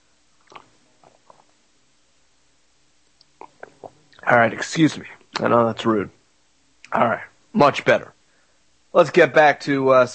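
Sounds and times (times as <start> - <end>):
person sipping fluoride-free water: 0.4 - 1.6, 3.2 - 4.2
speech: 4.3 - 6.2, 6.9 - 8.1, 8.9 - 10.1.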